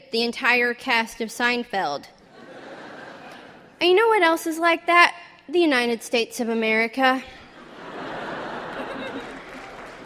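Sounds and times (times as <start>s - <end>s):
speech: 0.1s - 2.2s, 3.8s - 7.4s
laughter: 2.3s - 3.8s, 7.5s - 10.0s
audience applause: 8.0s - 10.0s.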